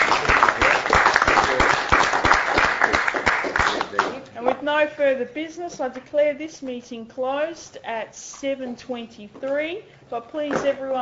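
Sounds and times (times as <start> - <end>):
group applauding at a meeting: 0.0 - 4.3
speech: 4.7 - 11.0.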